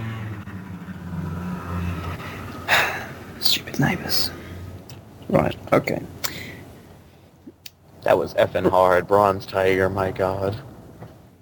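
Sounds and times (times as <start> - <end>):
noisy motorbike passing outside window: 0.0 - 4.8
speech: 3.8 - 4.4, 5.3 - 6.2, 8.0 - 10.7.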